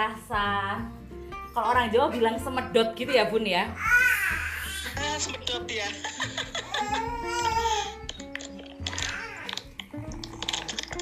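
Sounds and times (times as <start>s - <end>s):
speech: 0.0s - 1.0s, 1.6s - 4.4s, 5.0s - 7.4s
baby crying: 3.8s - 5.2s, 6.5s - 8.2s, 8.9s - 9.8s
laughter: 5.8s - 7.3s.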